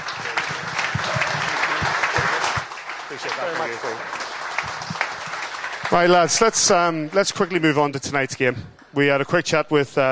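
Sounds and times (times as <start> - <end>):
audience applause: 0.0 - 7.6
speech: 3.1 - 4.2, 5.9 - 10.0.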